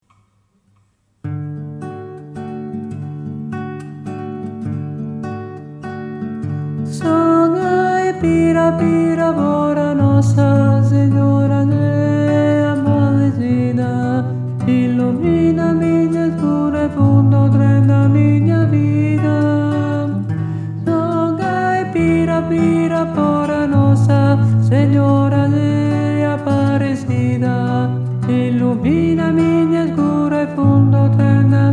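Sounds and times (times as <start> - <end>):
contralto voice: 7.0 - 31.7.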